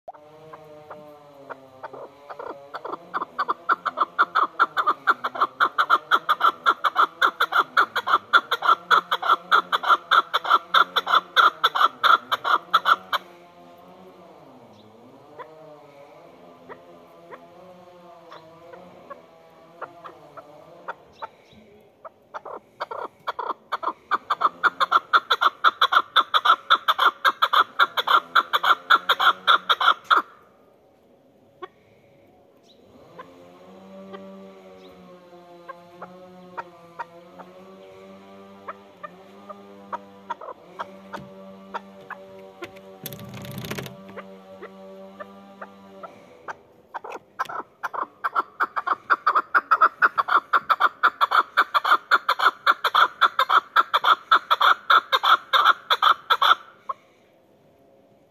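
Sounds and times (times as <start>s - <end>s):
mountain partridge calling: 0.9s - 13.3s, 22.3s - 30.3s, 39.9s - 42.2s, 46.9s - 56.7s.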